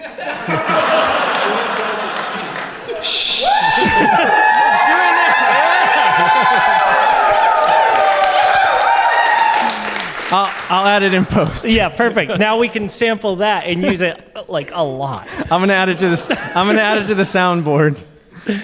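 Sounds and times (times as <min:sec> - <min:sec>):
laughter: 0:00.0 - 0:08.8, 0:09.6 - 0:18.6
live audience cheering: 0:00.0 - 0:11.8
speech: 0:10.3 - 0:18.6.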